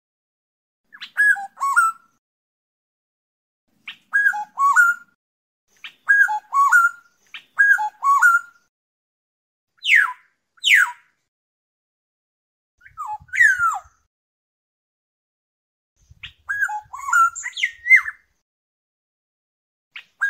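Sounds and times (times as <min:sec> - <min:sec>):
black-naped oriole fluting whistles: 0:00.9 - 0:02.2, 0:03.9 - 0:05.2, 0:05.8 - 0:08.7, 0:09.8 - 0:11.0, 0:12.8 - 0:14.1, 0:16.2 - 0:18.3, 0:20.0 - 0:20.2.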